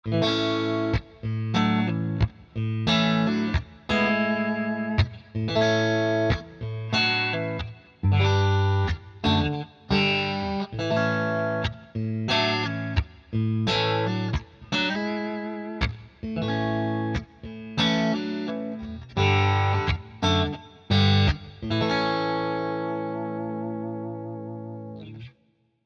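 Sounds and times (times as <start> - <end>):
clean amplified electric guitar: 0.0 - 25.4.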